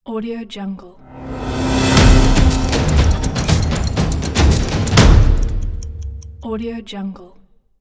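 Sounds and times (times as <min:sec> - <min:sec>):
news opener logo jingle: 0:01.0 - 0:06.8.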